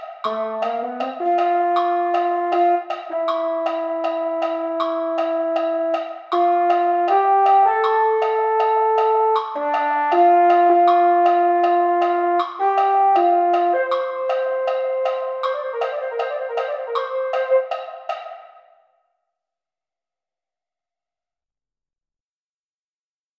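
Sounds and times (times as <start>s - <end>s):
mellophone: 0.3s - 18.0s.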